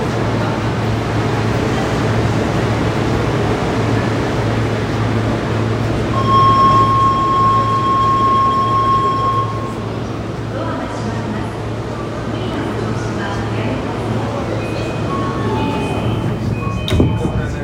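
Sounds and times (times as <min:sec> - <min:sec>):
train: 0:00.0 - 0:17.6.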